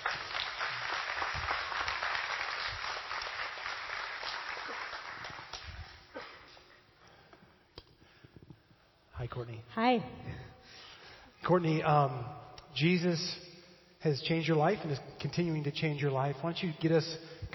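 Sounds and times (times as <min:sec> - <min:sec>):
crowd applause: 0:00.0 - 0:06.1
speech: 0:09.2 - 0:10.5, 0:11.5 - 0:13.4, 0:14.0 - 0:17.5.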